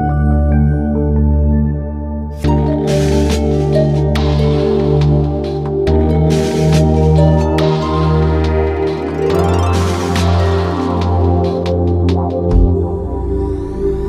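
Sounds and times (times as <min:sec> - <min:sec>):
melodic bass: 0:00.0 - 0:14.0
harp: 0:02.4 - 0:11.8.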